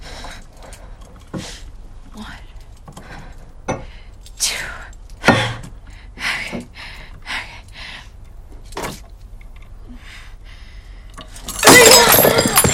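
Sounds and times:
glass shattering in a gripped hand against a wooden shelf: 0:11.5 - 0:12.7.

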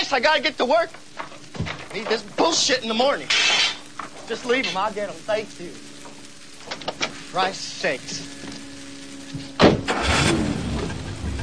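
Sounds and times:
speech: 0:00.1 - 0:05.9, 0:07.3 - 0:08.4
car engine starting and roaring as it races off: 0:08.2 - 0:11.4.

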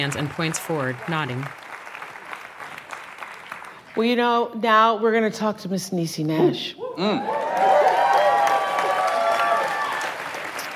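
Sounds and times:
speech: 0:00.0 - 0:01.6, 0:04.0 - 0:07.7
actors and audience members applauding: 0:00.0 - 0:04.0, 0:07.2 - 0:10.7
people cheering: 0:07.0 - 0:10.7.

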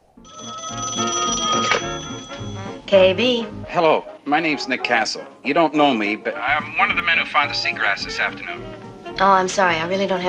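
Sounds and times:
telephone ringing inside a lighthouse: 0:00.3 - 0:03.3
speech: 0:02.9 - 0:10.2.

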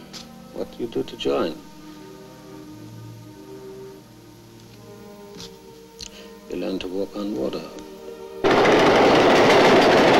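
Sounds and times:
speech: 0:00.6 - 0:01.7, 0:06.5 - 0:07.9
L train rattling along at dusk: 0:08.4 - 0:10.1.

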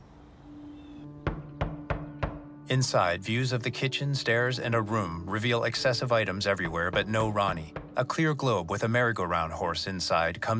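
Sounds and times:
knocking on a front door: 0:01.2 - 0:02.6, 0:06.6 - 0:08.2
speech: 0:02.7 - 0:10.5.

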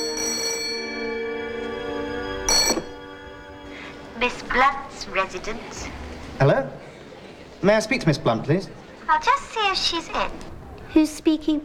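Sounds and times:
telephone ringing: 0:00.0 - 0:01.5, 0:02.3 - 0:03.2
speech: 0:04.2 - 0:06.8, 0:07.6 - 0:11.6.

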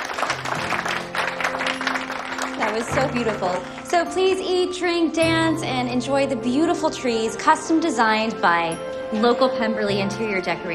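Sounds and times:
crowd applauding: 0:00.0 - 0:04.4
speech: 0:02.6 - 0:10.7.

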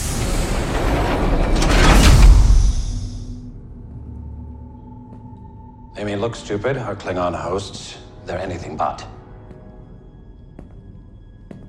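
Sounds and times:
barred cell door slamming shut: 0:00.0 - 0:03.3
speech: 0:06.0 - 0:09.2.

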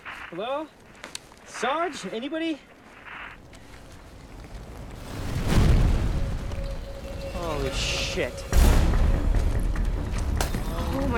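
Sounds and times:
speech: 0:00.3 - 0:02.7, 0:07.4 - 0:08.6, 0:10.8 - 0:11.1
lorry catching fire exploding: 0:04.6 - 0:10.8.

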